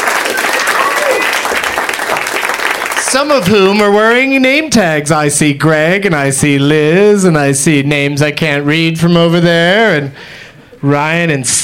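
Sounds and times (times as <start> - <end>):
audience whooping: 0.0 - 3.2
live theater audience applauding at the UCB Theater in Los Angeles: 0.0 - 3.8
speech: 3.1 - 11.6.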